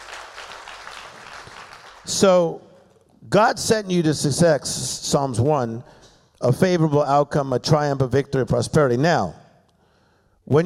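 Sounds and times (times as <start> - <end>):
audience clapping hands: 0.0 - 2.4
speech: 2.1 - 9.4, 10.5 - 10.6.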